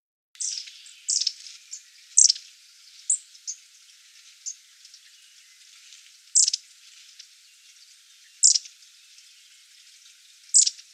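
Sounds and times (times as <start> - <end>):
several long-tailed tits giving thin very high short call bursts: 0.4 - 10.9.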